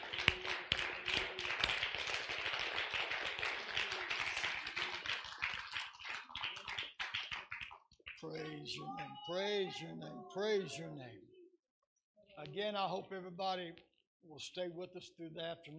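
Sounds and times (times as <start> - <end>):
crowd clapping: 0.0 - 9.9
speech: 8.2 - 11.3, 12.4 - 15.7.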